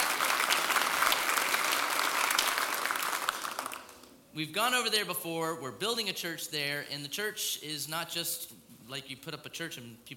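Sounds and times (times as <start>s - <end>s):
room full of people applauding: 0.0s - 4.1s
speech: 4.4s - 10.1s.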